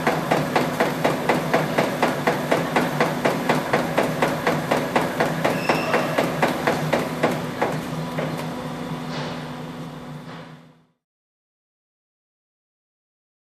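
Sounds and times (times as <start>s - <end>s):
labeling machine running: 0.0s - 9.0s.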